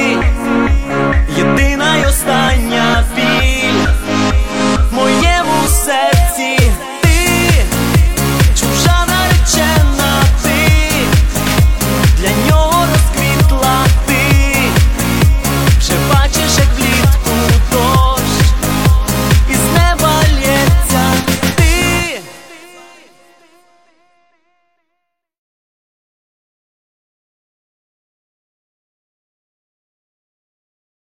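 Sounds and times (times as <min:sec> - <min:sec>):
radio remix: 0:00.0 - 0:23.7.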